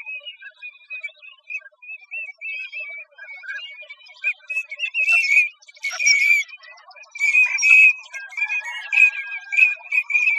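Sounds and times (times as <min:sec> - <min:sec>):
Green-winged teals calling in Arizona: 0:04.3 - 0:10.3.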